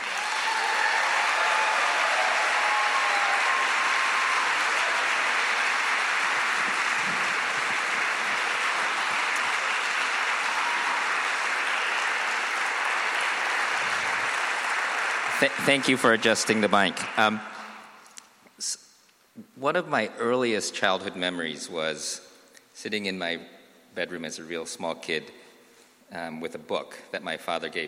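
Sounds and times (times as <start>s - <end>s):
audience applause: 0.0s - 18.0s
speech: 15.4s - 17.5s, 19.6s - 22.2s, 22.8s - 25.4s, 26.1s - 27.8s.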